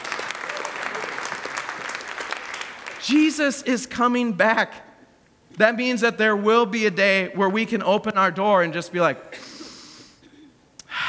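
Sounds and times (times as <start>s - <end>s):
audience applauding and cheering: 0.0s - 3.4s
speech: 3.0s - 4.9s, 5.6s - 9.3s.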